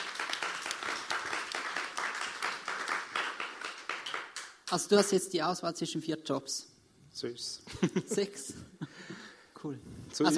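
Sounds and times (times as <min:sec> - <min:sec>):
audience applause: 0:00.0 - 0:04.6
speech: 0:04.7 - 0:08.6, 0:09.6 - 0:10.3
laughter: 0:07.7 - 0:09.2.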